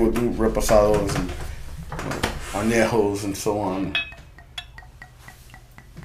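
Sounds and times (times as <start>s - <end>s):
speech: 0.0s - 4.1s
glassy clinks: 3.9s - 6.0s.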